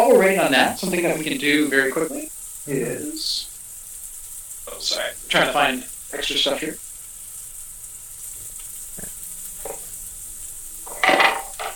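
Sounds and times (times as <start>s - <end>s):
speech: 0.1s - 3.5s, 4.7s - 6.8s
kitchen boards knocked over: 11.0s - 11.7s.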